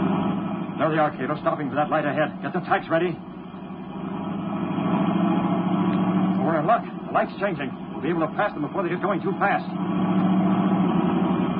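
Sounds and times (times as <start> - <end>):
sedan engine accelerating along a concrete road: 0.0 - 11.5
speech: 0.8 - 3.3, 6.6 - 10.0.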